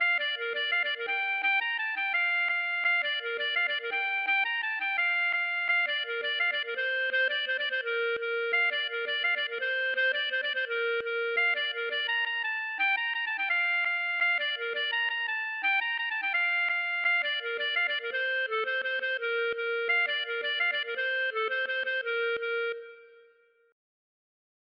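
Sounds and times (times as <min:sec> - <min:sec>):
gavotte: 0:00.0 - 0:23.6.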